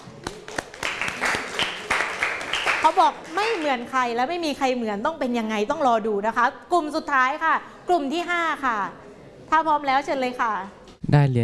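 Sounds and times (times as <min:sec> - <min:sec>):
audience applause: 0:00.3 - 0:03.6
speech: 0:02.8 - 0:11.4.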